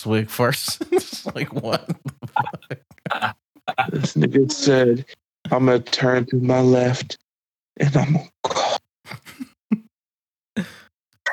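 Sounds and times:
speech: 0.0s - 7.2s, 7.8s - 8.4s
laughter: 0.5s - 4.8s
voice imitating coughing: 2.4s - 4.8s, 8.2s - 9.5s.

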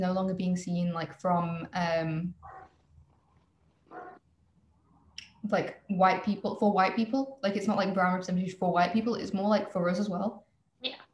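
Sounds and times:
speech: 0.0s - 2.6s, 5.4s - 11.1s
dog giving short barks: 3.9s - 4.2s.

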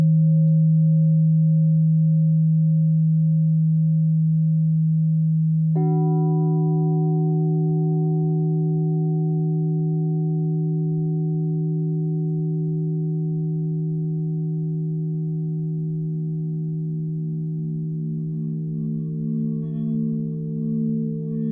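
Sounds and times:
crystal singing bowl humming: 0.0s - 21.5s
second crystal singing bowl struck: 5.7s - 21.5s.

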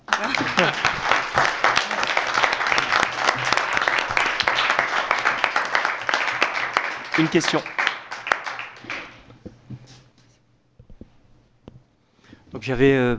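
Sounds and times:
laughter: 0.0s - 5.7s
audience applauding: 0.0s - 9.3s
speech: 0.2s - 1.0s, 7.2s - 7.8s, 12.6s - 13.1s.

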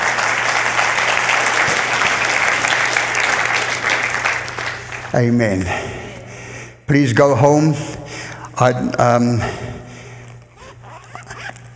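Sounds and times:
audience clapping: 0.0s - 5.8s
speech: 5.1s - 5.8s, 6.9s - 8.0s, 8.6s - 9.6s.

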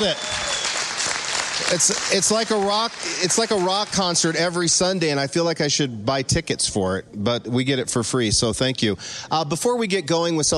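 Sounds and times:
speech: 0.0s - 0.3s, 1.6s - 10.5s
applause for worship team: 0.0s - 4.7s.

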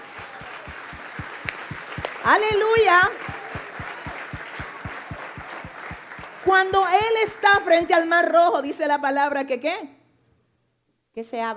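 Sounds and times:
audience applauding: 0.0s - 7.8s
speech: 2.3s - 3.3s, 6.5s - 10.0s, 11.2s - 11.5s.

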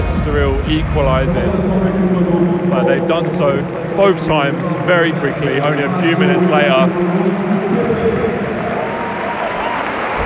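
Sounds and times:
speech: 0.3s - 8.5s
stadium crowd applauding substituted player: 4.0s - 10.2s.

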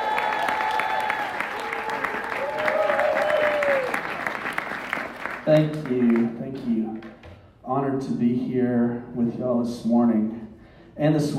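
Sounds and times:
church audience applause welcoming a guest preacher: 0.0s - 6.3s
speech: 5.5s - 7.0s, 7.7s - 10.3s, 11.0s - 11.3s.

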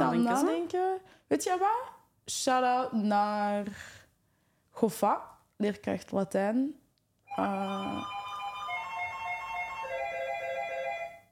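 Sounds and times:
speech: 0.2s - 4.0s, 4.8s - 8.2s
school bell ringing as an electronic chime: 7.3s - 11.2s.

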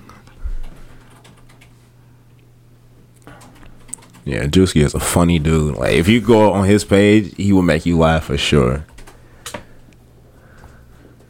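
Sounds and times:
low steady hum: 0.0s - 11.2s
typing a search on a computer keyboard: 0.6s - 1.8s, 3.2s - 4.3s, 8.8s - 9.6s
speech: 4.2s - 8.9s.

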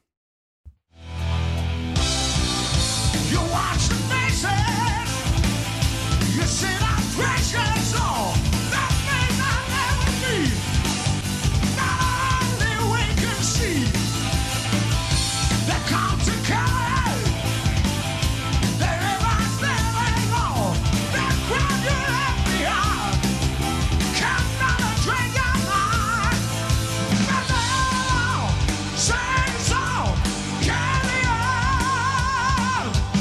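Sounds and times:
live rock band playing: 1.0s - 33.2s
man singing in a strained, soaring voice: 3.2s - 5.4s, 6.1s - 10.9s, 11.6s - 14.1s, 15.4s - 17.4s, 18.7s - 23.4s, 24.0s - 33.2s.

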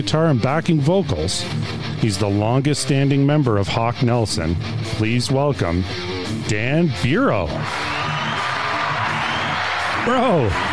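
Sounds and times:
speech: 0.0s - 8.0s, 10.0s - 10.7s
audience clapping: 7.6s - 10.7s.

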